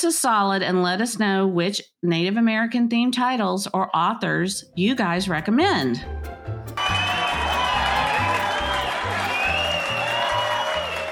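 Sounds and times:
speech: 0:00.0 - 0:06.4
crowd of fans cheering and applauding: 0:06.8 - 0:11.0.

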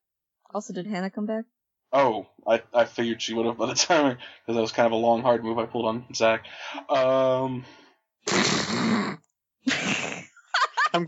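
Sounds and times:
speech: 0:00.5 - 0:09.1
nose blowing into the microphone: 0:08.2 - 0:10.3.

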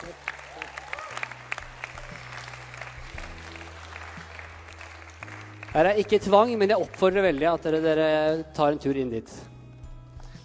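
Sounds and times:
audience clapping: 0:00.0 - 0:08.1
speech: 0:05.8 - 0:09.5.

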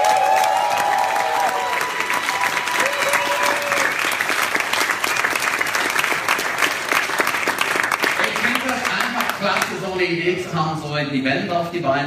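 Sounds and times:
audience applause: 0:00.0 - 0:10.1
speech: 0:10.0 - 0:12.0.

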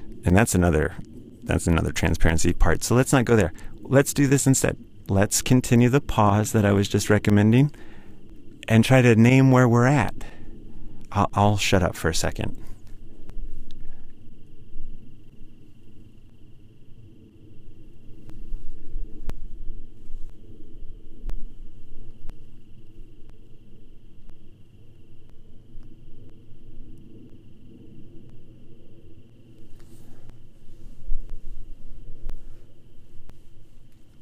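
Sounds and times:
airplane flying overhead: 0:00.0 - 0:34.1
crickets chirping: 0:00.0 - 0:34.1
speech: 0:00.2 - 0:07.9, 0:08.7 - 0:10.4, 0:11.1 - 0:12.7.

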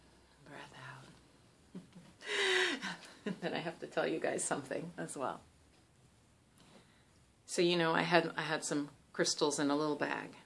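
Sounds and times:
deep breath in during an oracle card reading: 0:02.2 - 0:03.0
speech: 0:03.3 - 0:05.5, 0:07.6 - 0:10.4.

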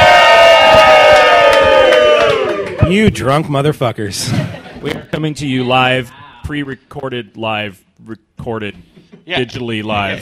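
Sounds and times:
live studio audience cheering: 0:00.0 - 0:03.3
scattered claps: 0:00.7 - 0:03.0
speech: 0:02.9 - 0:10.2.

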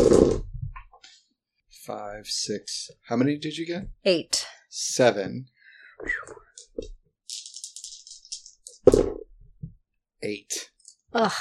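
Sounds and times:
speech: 0:01.9 - 0:06.9, 0:10.2 - 0:11.4
handful of dice rolling and rattling: 0:06.5 - 0:09.1.

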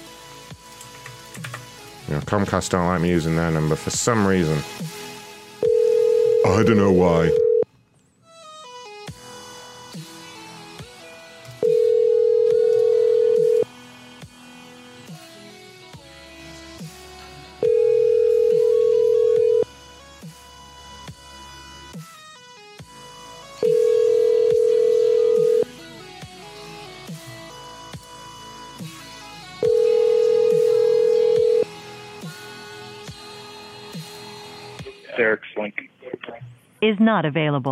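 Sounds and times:
speech: 0:02.1 - 0:05.0, 0:06.4 - 0:07.4, 0:37.1 - 0:37.7
telephone ringback tones: 0:05.6 - 0:07.6, 0:11.6 - 0:13.7, 0:17.6 - 0:19.7, 0:23.6 - 0:25.7, 0:29.6 - 0:31.7.

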